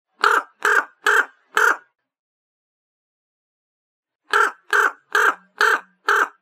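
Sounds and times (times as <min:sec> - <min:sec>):
raven calling: 0:00.2 - 0:01.9, 0:04.3 - 0:06.3.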